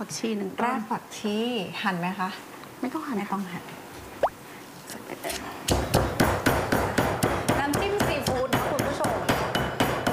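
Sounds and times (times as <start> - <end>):
speech: 0.0 - 3.8
pestle pounding garlic and chilies in a mortar: 5.3 - 10.1.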